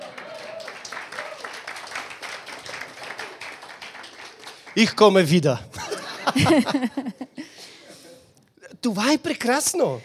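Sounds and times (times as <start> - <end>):
audience applause: 0.0 - 5.2
speech: 4.8 - 5.7, 6.3 - 7.4, 8.8 - 10.0
laughter: 5.7 - 8.3.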